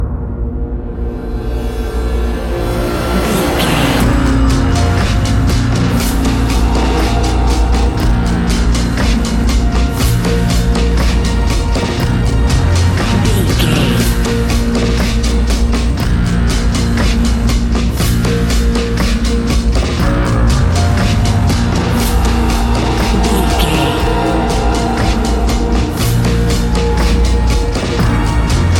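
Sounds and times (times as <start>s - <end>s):
suspenseful nightfall music: 0.0s - 28.7s.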